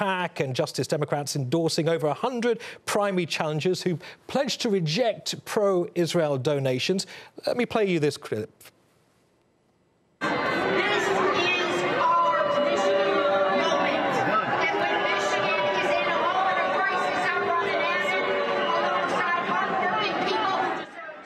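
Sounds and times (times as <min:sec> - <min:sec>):
speech: 0:00.0 - 0:08.8
convention crowd booing: 0:10.2 - 0:21.2
shouts and chatter: 0:10.2 - 0:21.2.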